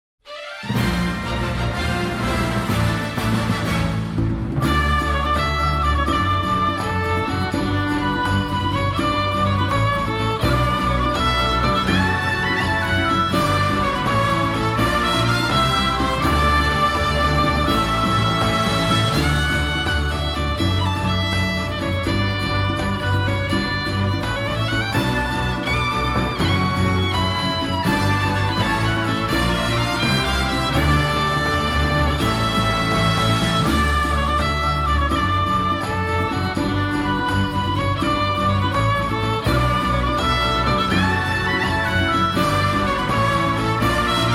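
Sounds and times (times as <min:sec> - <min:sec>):
victory fanfare: 0:00.2 - 0:44.3.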